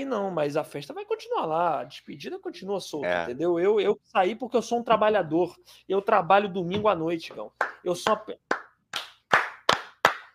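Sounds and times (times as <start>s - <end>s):
speech: 0.0s - 8.5s
round of applause at home: 7.6s - 10.3s.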